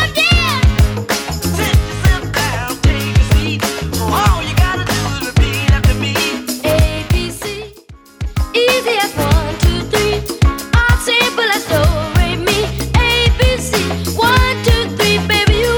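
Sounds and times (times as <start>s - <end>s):
clean 70s style acoustic drum beat: 0.0s - 15.7s.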